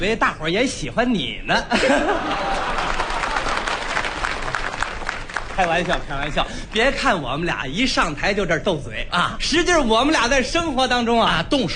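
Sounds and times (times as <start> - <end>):
speech: 0.0 - 2.6, 5.6 - 11.7
laughter: 1.7 - 4.0
audience applause: 2.2 - 6.3.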